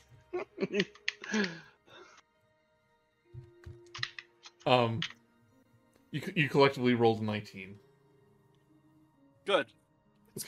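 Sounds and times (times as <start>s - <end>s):
laughter: 0.3s - 1.0s
speech: 0.4s - 1.6s, 4.7s - 5.2s, 6.1s - 7.9s, 9.5s - 9.8s
typing on a computer keyboard: 3.6s - 5.2s.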